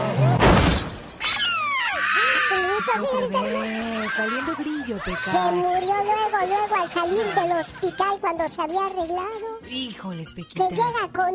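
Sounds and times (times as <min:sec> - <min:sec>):
car crash: 0:00.0 - 0:01.3
glass shattering: 0:00.4 - 0:01.4
laughter: 0:02.2 - 0:08.2
speech: 0:02.9 - 0:11.3.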